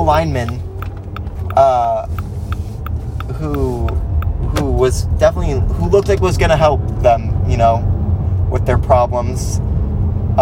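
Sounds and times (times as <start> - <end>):
car turn signal blinker ticking: 0.0 - 4.8
low car engine rumble: 0.0 - 10.3
speech: 0.1 - 0.7, 1.6 - 2.2, 3.4 - 4.0, 4.8 - 7.9, 8.5 - 9.7.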